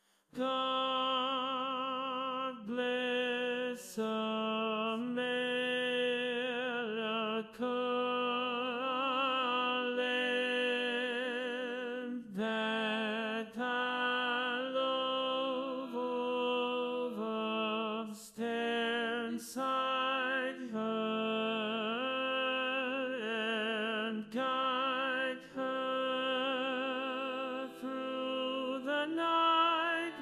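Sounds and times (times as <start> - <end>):
tenor singing in a chorus: 0.4 - 30.1.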